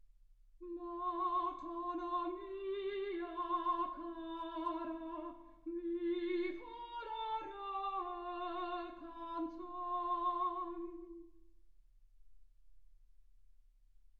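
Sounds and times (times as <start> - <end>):
soprano singing: 0.6 - 11.4.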